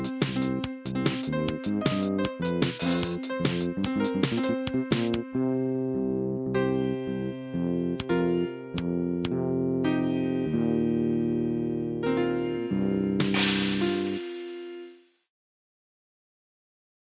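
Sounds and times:
drums: 0.0 - 5.2, 13.2 - 15.2
piano: 0.0 - 15.1.

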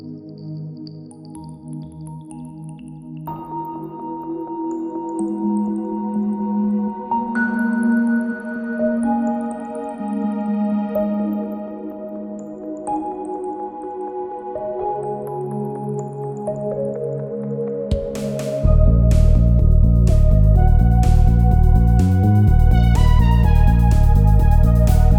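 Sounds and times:
gentle song: 0.0 - 25.1.

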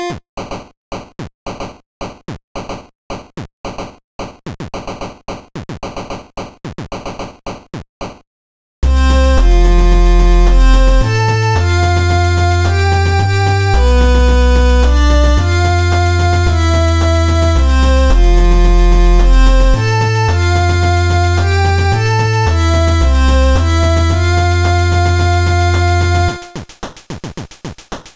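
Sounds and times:
title screen music: 8.8 - 26.6.

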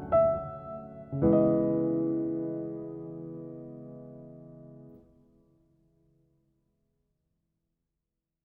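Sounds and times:
compressed emotional music without tritones: 0.0 - 5.0.

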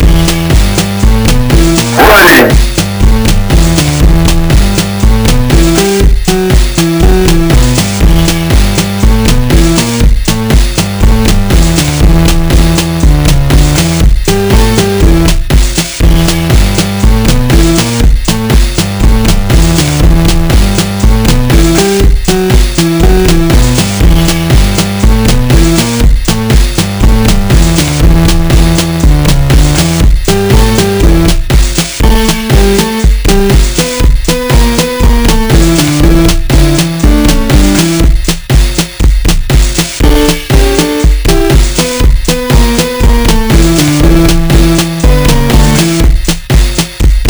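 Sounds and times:
choppy emulator music: 0.0 - 47.2.

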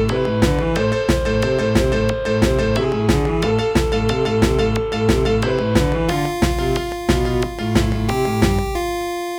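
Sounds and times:
string beat: 0.0 - 9.3.

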